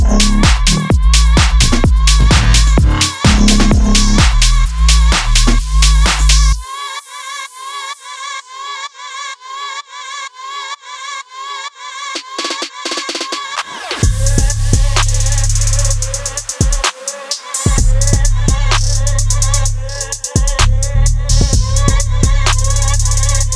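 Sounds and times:
ambience: 0:00.0 - 0:06.7, 0:13.8 - 0:23.5.

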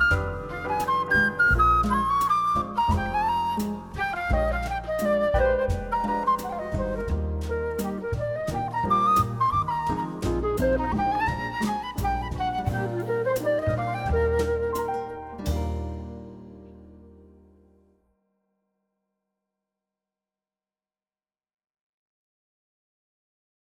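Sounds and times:
bossa nova music: 0:00.0 - 0:17.5.

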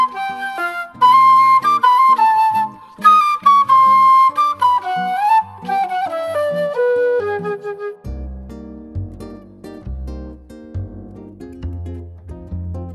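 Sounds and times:
morning jazz music: 0:00.0 - 0:08.8.

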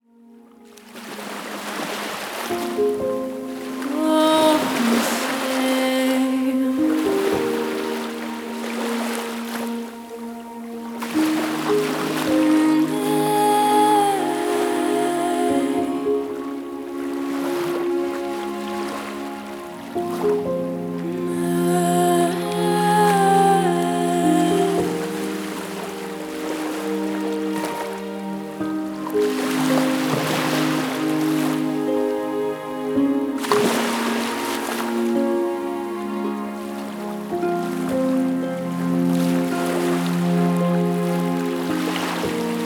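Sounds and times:
sad relaxing piano music: 0:00.1 - 0:42.6.

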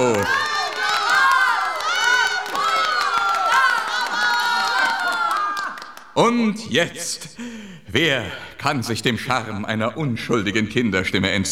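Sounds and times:
audience cheering and whooping: 0:00.0 - 0:06.0
scattered clapping: 0:00.0 - 0:06.2
speech: 0:06.2 - 0:11.5.

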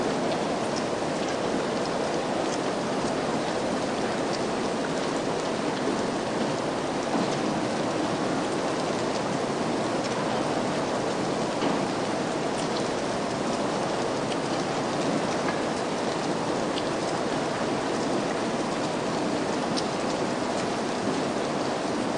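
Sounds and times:
rain: 0:00.0 - 0:22.1.

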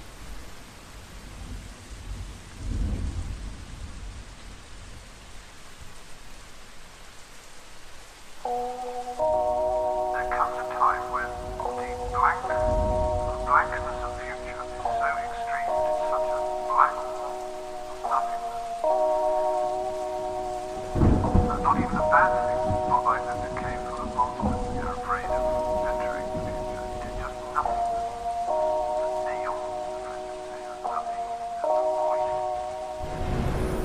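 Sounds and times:
lo-fi hip hop beat: 0:08.4 - 0:33.8.

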